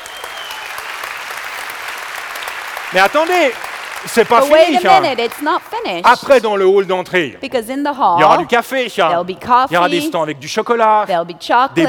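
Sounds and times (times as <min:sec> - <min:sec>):
audience applauding the musicians after a performance: 0:00.0 - 0:06.0
speech: 0:02.9 - 0:11.8.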